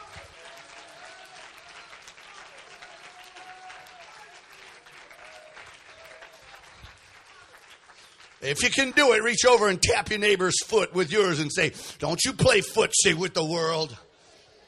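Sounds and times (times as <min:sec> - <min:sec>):
audience clapping hands: 0:00.0 - 0:11.5
speech: 0:08.4 - 0:14.1.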